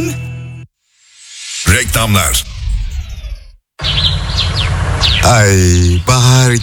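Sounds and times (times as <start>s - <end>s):
speech: 1.8s - 2.6s, 5.2s - 6.6s
spring birds chirping: 1.9s - 6.6s.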